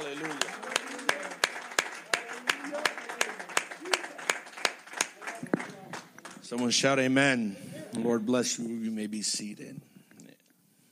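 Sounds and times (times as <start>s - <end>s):
voices and murmuring: 0.0s - 6.2s, 7.4s - 8.2s
crowd clapping hands in praise: 0.0s - 6.8s
speech: 6.5s - 9.9s.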